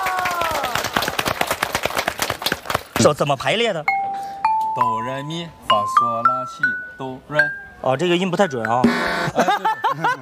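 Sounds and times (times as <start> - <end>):
audience applause: 0.0 - 3.0
speech: 3.0 - 4.0, 4.8 - 10.2
laughter: 9.2 - 10.2.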